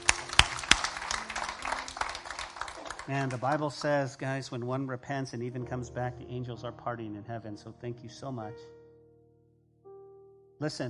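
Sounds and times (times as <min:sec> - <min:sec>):
congregation applauding at a church worship service: 0:00.0 - 0:04.7
speech: 0:03.1 - 0:08.8, 0:10.6 - 0:10.8.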